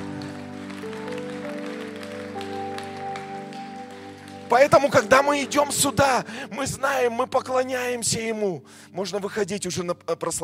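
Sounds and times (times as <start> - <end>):
audience applause: 0.0 - 5.2
speech: 4.5 - 10.4.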